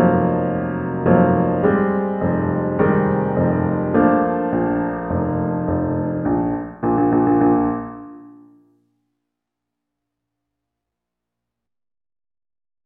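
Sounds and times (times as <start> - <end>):
solo piano: 0.0 - 8.9.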